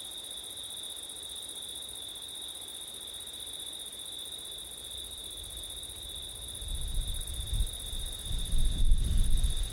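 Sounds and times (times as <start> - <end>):
continuous cricket song: 0.9 - 9.7
soft rushing wind: 5.4 - 9.7.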